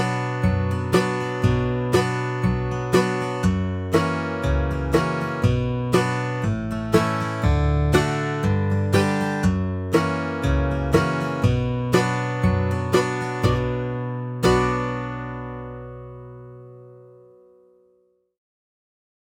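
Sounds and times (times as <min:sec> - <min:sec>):
music loop in B minor at 60 BPM: 0:00.0 - 0:15.3.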